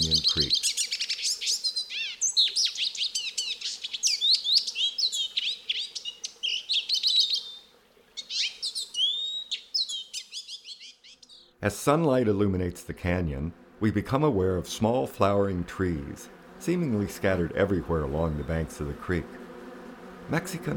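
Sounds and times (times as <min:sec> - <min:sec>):
lesser goldfinch calls: 0:00.0 - 0:07.6, 0:08.2 - 0:11.5
speech: 0:00.4 - 0:00.6, 0:11.6 - 0:19.4, 0:20.3 - 0:20.7.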